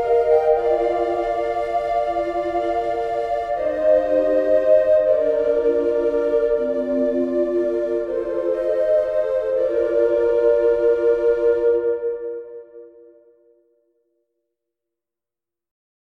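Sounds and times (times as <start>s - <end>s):
recorder trio playing: 0.0s - 12.6s.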